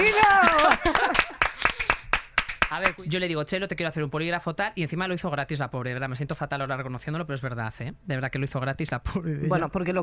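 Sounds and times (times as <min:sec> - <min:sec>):
laughter: 0:00.0 - 0:01.5
audience applause: 0:00.0 - 0:02.9
speech: 0:02.8 - 0:10.0.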